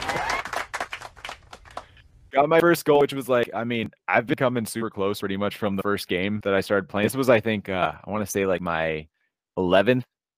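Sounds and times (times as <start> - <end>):
burst of applause: 0.0 - 2.0
speech: 2.4 - 10.1.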